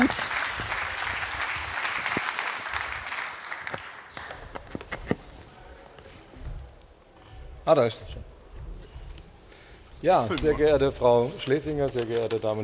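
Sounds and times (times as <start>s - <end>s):
audience applause: 0.0s - 4.6s
speech: 7.7s - 8.2s, 10.0s - 12.6s.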